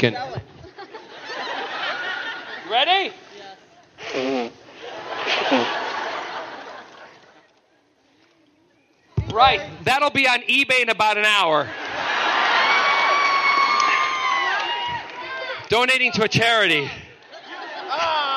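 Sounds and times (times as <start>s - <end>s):
speech: 0.0s - 0.4s, 2.7s - 3.2s, 4.2s - 4.6s, 9.4s - 11.8s, 15.7s - 17.0s
laughter: 0.4s - 3.3s, 4.0s - 7.7s, 11.6s - 18.3s
nose blowing: 4.0s - 5.8s.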